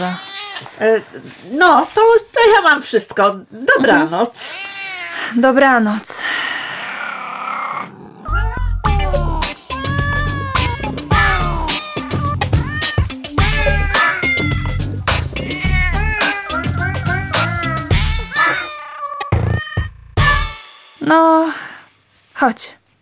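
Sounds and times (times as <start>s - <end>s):
cat meowing and caterwauling: 0.0s - 0.8s, 4.4s - 5.4s, 6.6s - 20.6s
speech: 0.0s - 6.4s, 21.1s - 21.6s, 22.4s - 22.8s.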